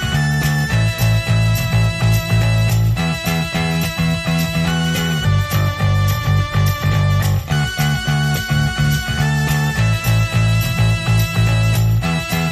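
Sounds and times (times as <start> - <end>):
bass: 0.0 - 12.5
organ lead: 0.0 - 12.5.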